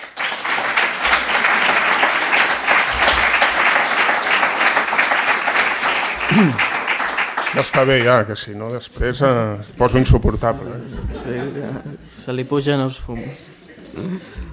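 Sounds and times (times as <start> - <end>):
audience applause: 0.0 - 8.2
laughter: 6.1 - 6.8, 10.5 - 12.5, 13.2 - 14.5
speech: 6.3 - 6.7, 7.6 - 14.5.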